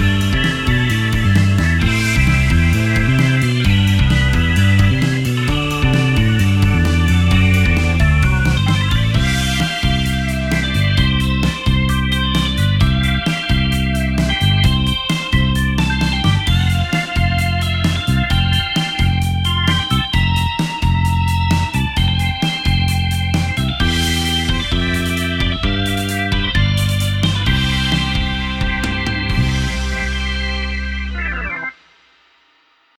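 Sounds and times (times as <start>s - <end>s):
summer music for driving and surfing: 0.0s - 31.7s.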